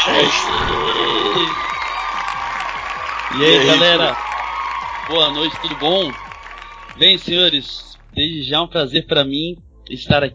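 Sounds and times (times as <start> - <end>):
round of applause and cheering: 0.0 - 8.3
speech: 0.1 - 1.6, 3.3 - 4.3, 5.1 - 6.2, 6.9 - 10.3.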